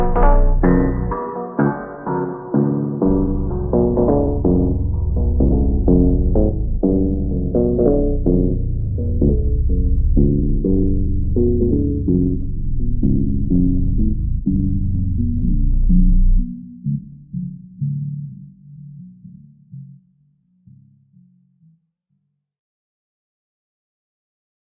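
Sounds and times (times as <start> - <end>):
ultra hyper mega slowed reverb phonk with bass: 0.0 - 19.7.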